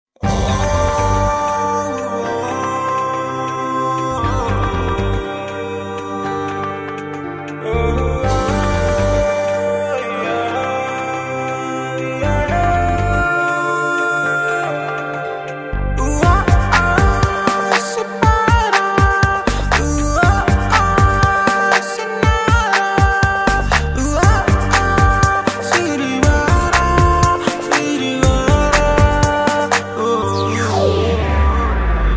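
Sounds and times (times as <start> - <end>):
Telugu ringtone music: 0.2 - 32.1.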